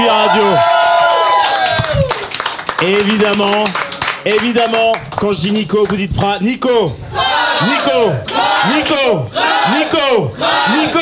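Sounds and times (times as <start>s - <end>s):
audience clapping: 0.4s - 6.0s
speech: 2.8s - 11.0s.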